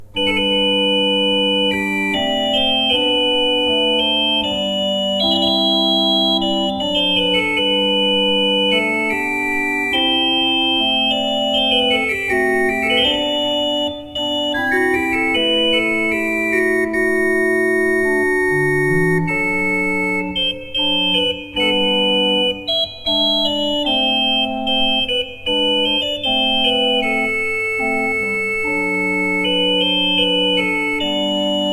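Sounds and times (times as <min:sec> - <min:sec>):
Tzschoeckel pipe organ playing: 0:00.0 - 0:31.7.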